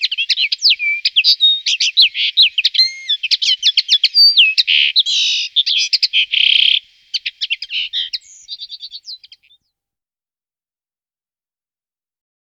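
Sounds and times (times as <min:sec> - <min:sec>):
common linnet twittering: 0:00.0 - 0:09.6.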